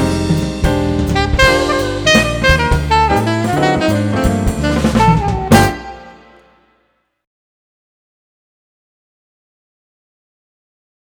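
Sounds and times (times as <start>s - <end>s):
jazz medley: 0.0s - 6.9s.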